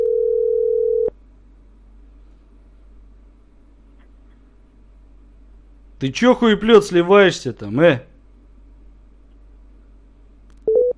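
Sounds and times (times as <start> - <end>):
telephone busy tone after a call is hung up: 0.0 - 1.1, 10.7 - 10.9
speech: 6.0 - 8.1.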